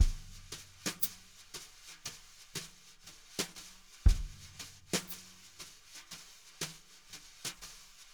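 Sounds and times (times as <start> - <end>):
jazz brush drum loop: 0.0 - 2.4, 3.2 - 6.9.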